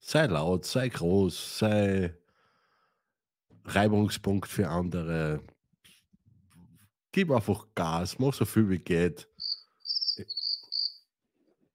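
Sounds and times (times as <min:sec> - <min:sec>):
speech: 0:00.1 - 0:02.2, 0:03.6 - 0:05.5, 0:07.1 - 0:09.3, 0:10.2 - 0:10.4
bird-call message notification sound on a phone: 0:09.4 - 0:11.0.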